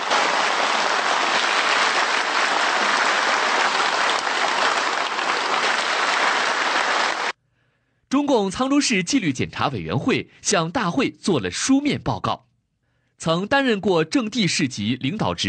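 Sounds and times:
warm applause in a meeting hall: 0.0 - 7.4
speech: 8.2 - 12.5, 13.2 - 15.4.

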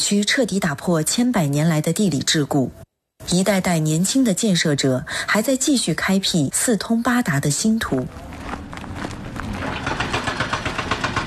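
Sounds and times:
speech: 0.1 - 8.3
heavy construction machinery working at a highway construction site: 9.4 - 11.2.

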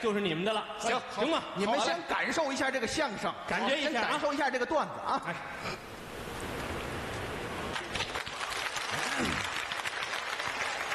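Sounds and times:
speech: 0.0 - 5.9
audience applauding at a Chinese crosstalk comedy performance: 7.1 - 10.9.

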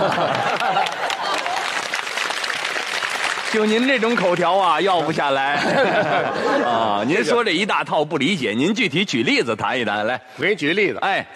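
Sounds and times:
laughter: 0.0 - 1.9, 5.4 - 7.4
audience applause: 0.0 - 5.2
speech: 3.5 - 11.3.

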